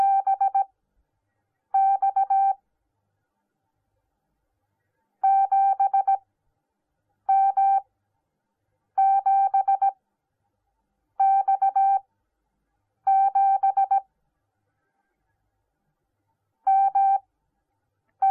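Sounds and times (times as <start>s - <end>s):
morse code beeps: 0.0s - 0.7s, 1.8s - 2.6s, 5.2s - 6.2s, 7.3s - 7.8s, 9.0s - 10.0s, 11.2s - 12.0s, 13.1s - 14.0s, 16.7s - 17.2s.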